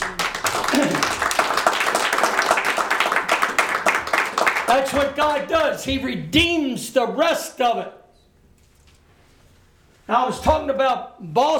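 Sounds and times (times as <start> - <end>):
audience clapping hands: 0.0 - 5.8
speech: 4.7 - 8.0, 10.1 - 11.5.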